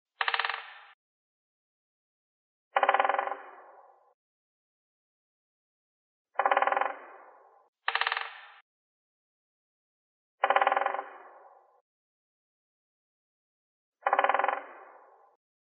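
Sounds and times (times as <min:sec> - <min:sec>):
woodpecker drumming: 0:02.8 - 0:03.4, 0:06.4 - 0:07.0, 0:07.9 - 0:08.5, 0:10.4 - 0:11.1, 0:14.0 - 0:14.7.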